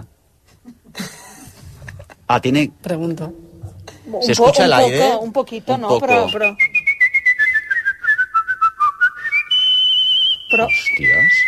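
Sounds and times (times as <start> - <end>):
speech: 2.3 - 3.4, 4.1 - 6.7, 10.5 - 11.4
human whistling: 6.0 - 11.4.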